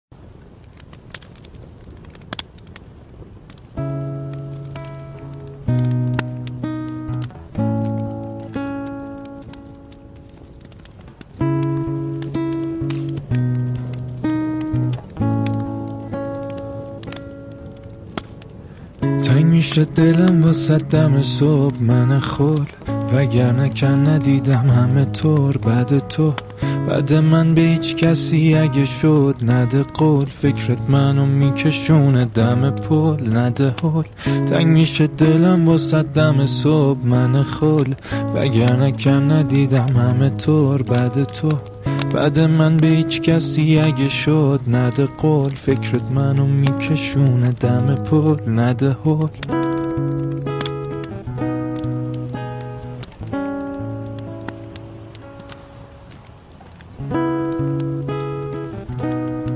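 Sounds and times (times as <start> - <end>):
guitar: 0.6 - 59.5.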